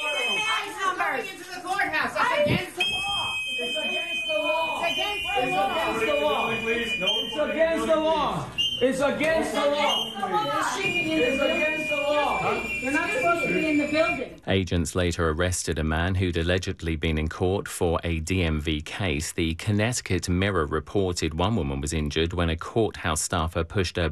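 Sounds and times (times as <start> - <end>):
protesters blowing shrill whistles: 0.0 - 1.1, 2.6 - 14.3
crowd chatter: 0.0 - 14.4
speech: 8.8 - 24.1.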